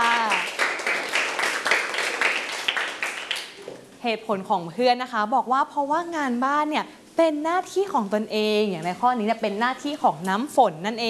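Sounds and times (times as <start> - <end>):
classroom applause for a classmate: 0.0 - 3.7
speech: 4.0 - 11.0.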